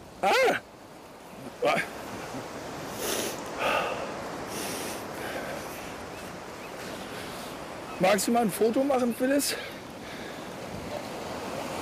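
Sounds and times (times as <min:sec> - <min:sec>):
gusty wind: 0:00.0 - 0:11.7
ocean waves washing onto the beach on Sylt: 0:00.0 - 0:11.7
speech: 0:00.2 - 0:00.7, 0:01.6 - 0:01.9, 0:08.0 - 0:09.8.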